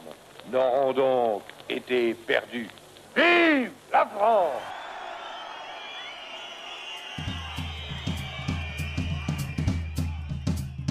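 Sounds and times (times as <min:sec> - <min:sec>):
speech: 0:00.5 - 0:04.8
large crowd cheering and shouting: 0:04.4 - 0:10.8
rhythmic claps or beats: 0:06.0 - 0:10.8.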